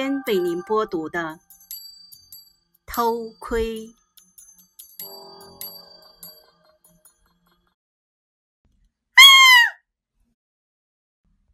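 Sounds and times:
speech: 0.0 - 1.5, 2.9 - 4.0
screaming from outside the window: 9.2 - 9.8.

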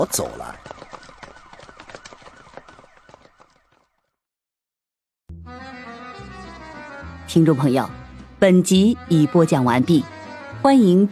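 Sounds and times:
speech: 0.0 - 0.9, 7.3 - 11.1
police car siren wailing: 0.0 - 3.5.

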